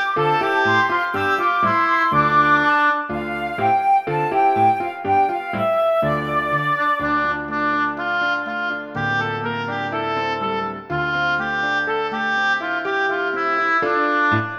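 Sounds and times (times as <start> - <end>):
instrumental music: 0.0 - 14.5.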